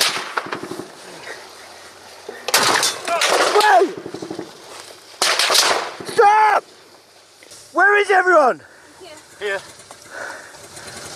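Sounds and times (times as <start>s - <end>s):
gunshots near a checkpoint in Ukraine: 0.0s - 1.0s, 2.5s - 4.5s, 5.2s - 6.2s
speech: 8.1s - 8.7s, 9.4s - 9.8s.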